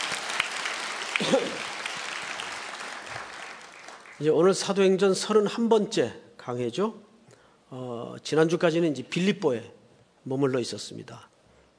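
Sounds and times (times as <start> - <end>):
audience applause: 0.0 - 4.3
speech: 1.2 - 1.8, 4.2 - 7.1, 7.7 - 11.3.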